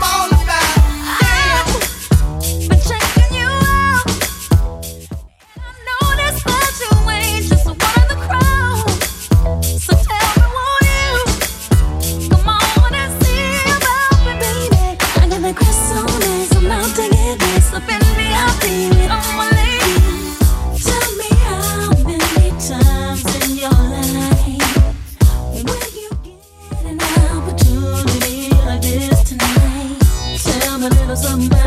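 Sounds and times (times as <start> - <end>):
throwback RnB beat at 100bpm: 0.0 - 31.6.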